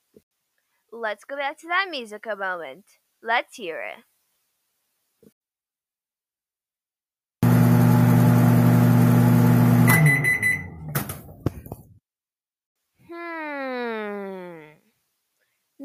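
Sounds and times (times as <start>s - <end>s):
speech: 1.0s - 4.1s
microwave oven humming: 7.4s - 11.4s.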